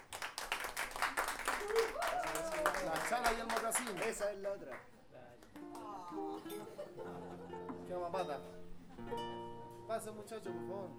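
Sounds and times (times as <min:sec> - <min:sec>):
audience clapping at a Chilean payadores night: 0:00.0 - 0:06.4
speech: 0:01.6 - 0:04.9, 0:06.1 - 0:10.9
laughter: 0:05.8 - 0:08.0.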